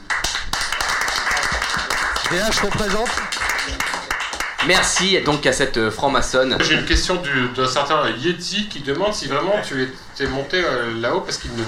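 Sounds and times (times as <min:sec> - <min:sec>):
clapping: 0:00.0 - 0:05.5
speech: 0:02.3 - 0:03.8, 0:04.6 - 0:11.6.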